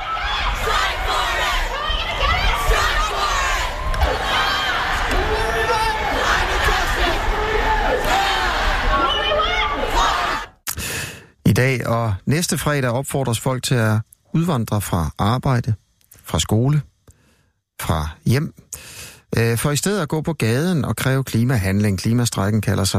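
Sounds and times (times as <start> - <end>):
climate strike protest crowd chanting in Sydney: 0.0 - 10.6
speech: 11.6 - 16.9, 17.8 - 22.9.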